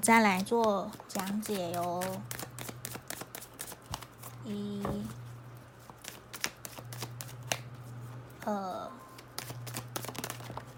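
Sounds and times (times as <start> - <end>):
speech: 0.0 - 2.4, 4.4 - 5.2, 8.5 - 9.0
tarot cards shuffling: 0.4 - 4.4, 5.8 - 7.7, 9.2 - 10.7.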